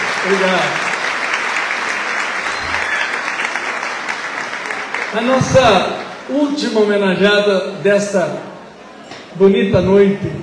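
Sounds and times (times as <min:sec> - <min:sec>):
audience applause: 0:00.0 - 0:06.3
speech: 0:00.2 - 0:00.8, 0:05.1 - 0:08.5, 0:09.3 - 0:10.4.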